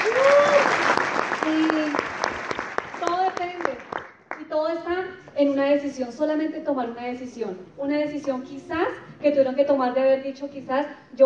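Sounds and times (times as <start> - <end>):
crowd applause: 0.0 - 4.1
speech: 5.8 - 11.2.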